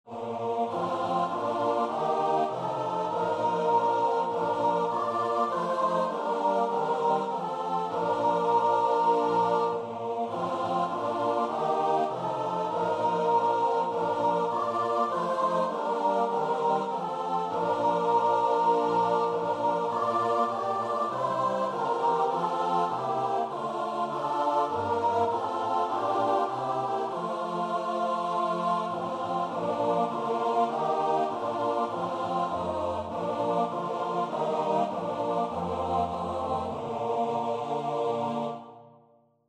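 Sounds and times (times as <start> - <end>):
choir singing: 0.0 - 39.1.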